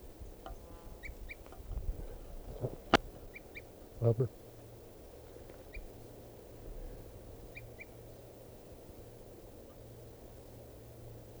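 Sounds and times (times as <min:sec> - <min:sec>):
wild bird calls: 0:00.0 - 0:08.2
speech: 0:04.0 - 0:04.4.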